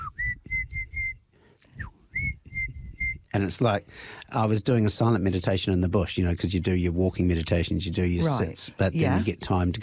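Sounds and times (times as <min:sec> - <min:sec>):
person whistling imitation of tui birdsong: 0:00.0 - 0:03.3
speech: 0:03.4 - 0:09.8.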